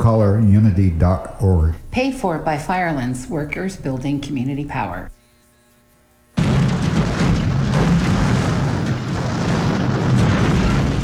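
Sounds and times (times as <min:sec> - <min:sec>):
speech: 0:00.4 - 0:05.2
air conditioner breaking down with loud boom: 0:06.4 - 0:11.0.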